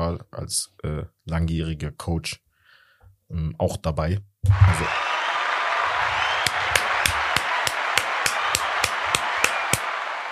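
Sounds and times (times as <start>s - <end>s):
speech: 0.2s - 2.4s, 3.3s - 5.2s
crowd applause: 4.5s - 10.2s.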